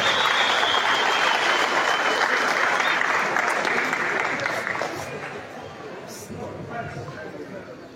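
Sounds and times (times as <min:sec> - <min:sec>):
audience applause from the public of Huancabamba: 0:00.0 - 0:06.0.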